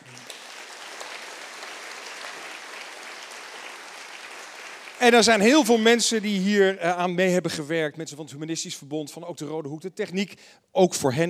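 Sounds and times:
crowd applause: 0:00.0 - 0:06.1
speech: 0:05.0 - 0:11.2.

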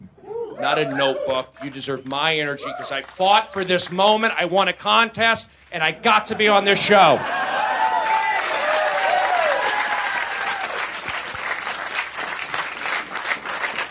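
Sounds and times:
speech: 0:00.6 - 0:07.5
comedy club audience applause: 0:00.8 - 0:04.0, 0:07.0 - 0:13.8.

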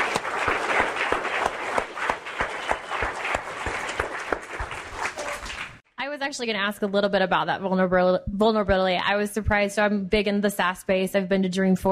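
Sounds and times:
audience round of applause: 0:00.0 - 0:05.8
speech: 0:06.3 - 0:11.8.

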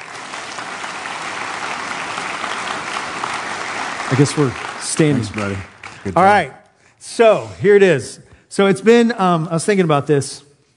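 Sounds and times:
crowd applauding: 0:00.0 - 0:06.5
speech: 0:04.1 - 0:10.5.

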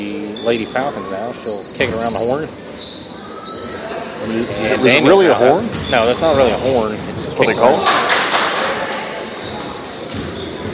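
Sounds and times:
crowd noise: 0:00.0 - 0:10.7
speech: 0:00.4 - 0:02.6, 0:04.2 - 0:08.2
basketball dribbled on the court during a women's high school game: 0:05.7 - 0:07.4, 0:09.4 - 0:10.7.

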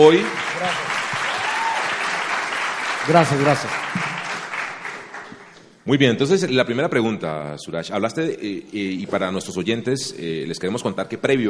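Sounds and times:
speech: 0:00.0 - 0:00.9, 0:03.1 - 0:04.1, 0:05.8 - 0:11.4
applause: 0:00.0 - 0:05.6.

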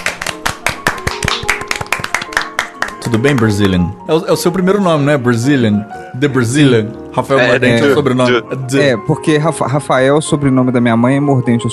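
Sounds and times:
applause for a podcast guest: 0:00.0 - 0:03.9
speech: 0:03.1 - 0:11.7.

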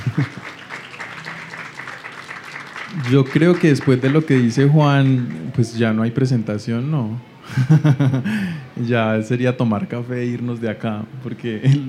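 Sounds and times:
laughter: 0:00.0 - 0:01.4, 0:07.5 - 0:08.8
audience applause: 0:00.0 - 0:05.8
speech: 0:00.1 - 0:00.5, 0:02.9 - 0:11.8.

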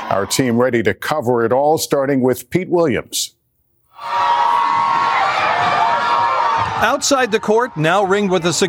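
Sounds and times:
crowds cheering outside the Supreme Court: 0:00.0 - 0:00.6, 0:04.0 - 0:08.6
speech: 0:00.2 - 0:03.4, 0:06.8 - 0:08.6.

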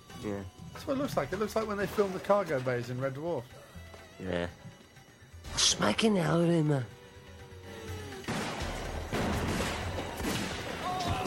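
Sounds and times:
speech: 0:00.2 - 0:03.6, 0:04.2 - 0:04.6, 0:05.6 - 0:07.0
gunfire in an action film scene: 0:08.2 - 0:11.2.

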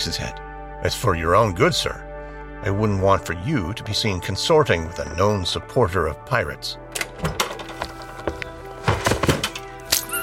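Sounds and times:
speech: 0:00.0 - 0:07.4
wooden thunks and knocks of a carriage rolling away: 0:07.2 - 0:09.7.

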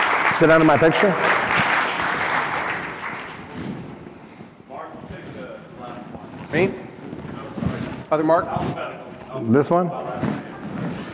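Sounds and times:
audience applause: 0:00.0 - 0:03.6
speech: 0:00.4 - 0:01.6, 0:06.5 - 0:06.8, 0:08.1 - 0:10.3.

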